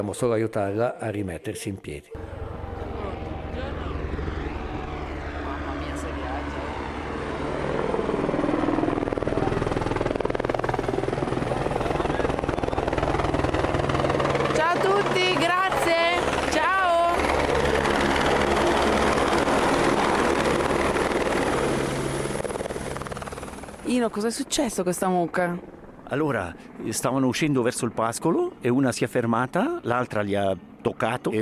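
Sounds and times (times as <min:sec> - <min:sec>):
speech: 0:00.0 - 0:02.4, 0:24.0 - 0:31.3
helicopter flying: 0:02.1 - 0:31.3.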